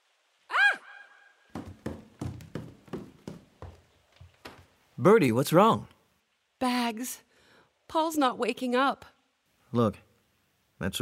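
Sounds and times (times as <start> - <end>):
loud knocking on a door: 1.5 - 3.8
speech: 5.0 - 5.9, 6.9 - 7.3, 7.9 - 9.1, 9.7 - 10.0, 10.8 - 10.9.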